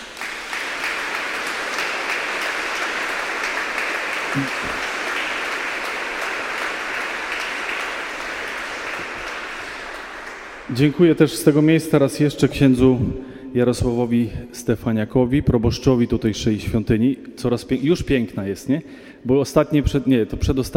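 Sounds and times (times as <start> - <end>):
audience applause: 0.0 - 11.3
speech: 4.4 - 4.9, 10.7 - 20.7.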